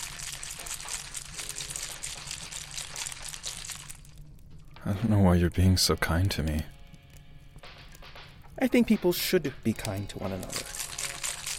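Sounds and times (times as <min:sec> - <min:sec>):
cocktail shaker being shaken: 0:00.0 - 0:04.1, 0:10.4 - 0:11.5
speech: 0:04.8 - 0:06.7, 0:08.6 - 0:10.8.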